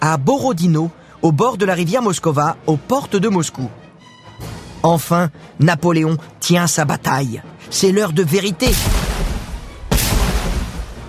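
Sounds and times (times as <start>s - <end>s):
speech: 0.0s - 3.8s, 4.4s - 9.3s
cannon fire: 8.7s - 11.0s.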